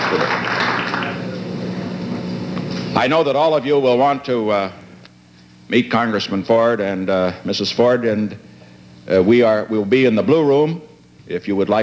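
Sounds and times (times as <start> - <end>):
audience standing ovation applause: 0.0 - 1.4
speech: 3.0 - 4.8, 5.7 - 8.4, 9.0 - 11.8.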